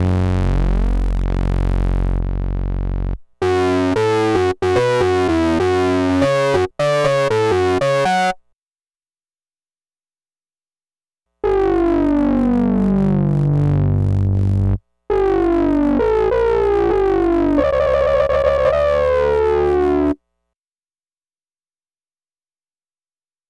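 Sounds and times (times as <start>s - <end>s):
FS1R synth sync sounds: 0.2s - 8.4s, 11.4s - 20.2s.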